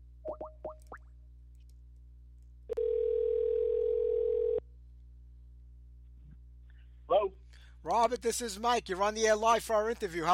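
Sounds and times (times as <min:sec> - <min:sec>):
telephone dial tone: 0:02.8 - 0:04.6
speech: 0:07.8 - 0:10.3.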